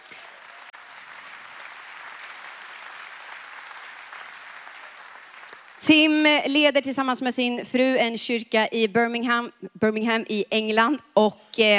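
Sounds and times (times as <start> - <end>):
warm audience applause: 0.0 - 5.9
speech: 5.8 - 11.7.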